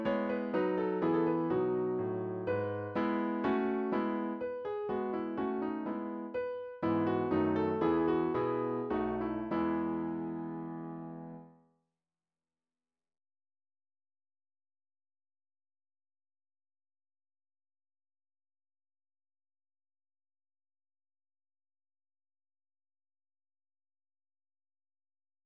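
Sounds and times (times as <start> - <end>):
classical MIDI music: 0.0 - 11.5.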